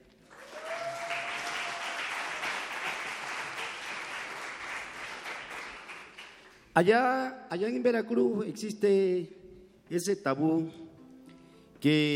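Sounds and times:
audience applause: 0.2s - 6.5s
speech: 6.8s - 10.8s, 11.8s - 12.1s.

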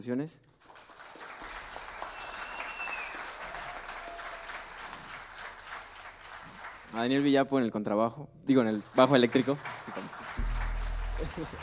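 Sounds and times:
speech: 0.0s - 0.8s, 6.9s - 10.2s, 11.2s - 11.6s
audience applause: 0.6s - 7.1s, 8.6s - 11.6s
faint whistle: 2.0s - 3.3s.

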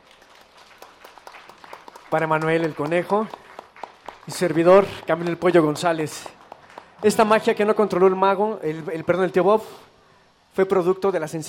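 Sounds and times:
crowd applause: 0.0s - 8.2s
speech: 2.1s - 3.4s, 4.3s - 6.4s, 7.0s - 9.9s, 10.6s - 11.4s.

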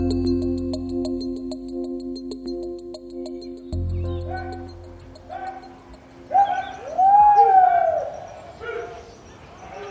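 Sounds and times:
faint low rumble: 0.0s - 7.0s
low droning tones in Tierra del Fuego: 0.0s - 7.3s
high chirps: 0.0s - 8.3s.

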